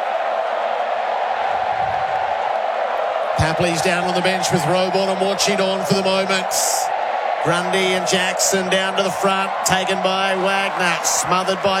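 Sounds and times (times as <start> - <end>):
large stadium crowd roar: 0.0 - 11.7
speech: 3.4 - 11.7.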